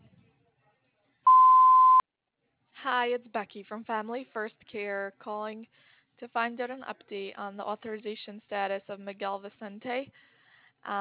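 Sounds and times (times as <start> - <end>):
voicemail beep tone: 1.3 - 2.0
speech: 2.9 - 10.9.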